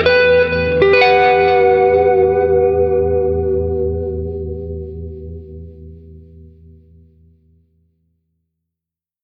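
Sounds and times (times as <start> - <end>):
guitar twang: 0.0 - 7.3.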